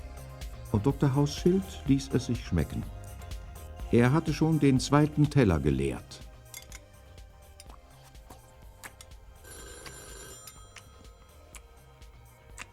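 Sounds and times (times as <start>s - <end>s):
speech: 0.7s - 3.0s, 3.9s - 6.2s
telephone ringing: 9.3s - 12.0s.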